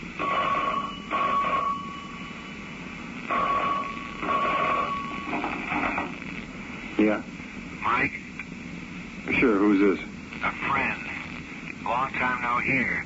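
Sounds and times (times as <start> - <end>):
telephone ringing: 0.2 - 2.3, 3.3 - 5.7
speech: 7.0 - 7.4, 8.0 - 8.2, 9.3 - 10.8, 11.9 - 13.0.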